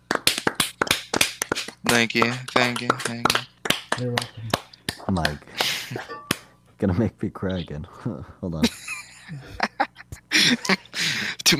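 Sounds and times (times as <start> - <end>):
round of applause: 0.1 - 4.6
speech: 1.8 - 3.4, 4.0 - 6.2, 6.8 - 9.7, 10.4 - 11.5.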